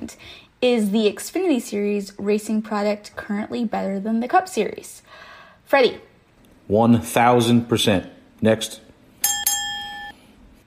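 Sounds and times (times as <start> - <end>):
speech: 0.1 - 6.1, 6.7 - 8.8
bell dinger ringing: 9.2 - 10.2.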